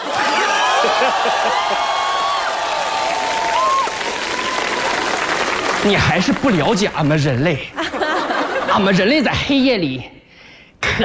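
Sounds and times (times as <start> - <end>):
faint cheers and laughter: 0.0 - 5.0
loud applause from a large audience: 0.0 - 7.4
speech: 0.8 - 2.0, 5.8 - 7.8, 8.7 - 10.2.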